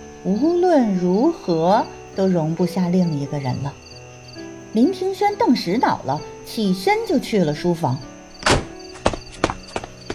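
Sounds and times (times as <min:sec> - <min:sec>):
speech: 0:00.2 - 0:03.8, 0:04.7 - 0:08.1
door slamming shut: 0:08.4 - 0:09.2.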